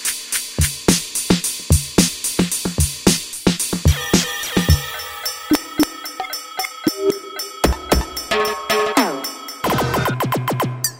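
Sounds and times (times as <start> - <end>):
synthesizer drum kit factory preset sounds: 0.3 - 6.0, 6.9 - 10.9.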